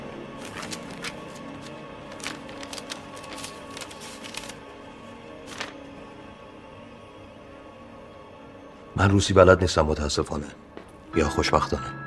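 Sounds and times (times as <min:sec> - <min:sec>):
paper rustling as a letter is opened: 0:00.4 - 0:06.0
speech: 0:09.0 - 0:12.0.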